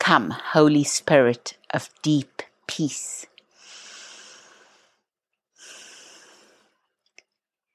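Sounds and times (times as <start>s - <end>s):
speech: 0.1s - 3.3s
deep breaths during a guided prayer: 3.5s - 7.1s.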